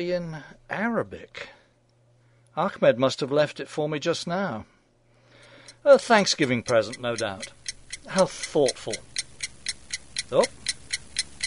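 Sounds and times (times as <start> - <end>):
speech: 0.0 - 1.6, 2.6 - 4.7, 5.8 - 9.1, 10.3 - 10.6
clock given as a wrapped Thanksgiving present ticking: 5.4 - 11.4.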